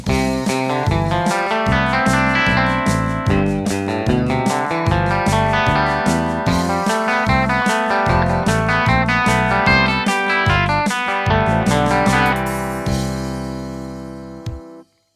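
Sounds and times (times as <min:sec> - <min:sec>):
country music: 0:00.1 - 0:14.8.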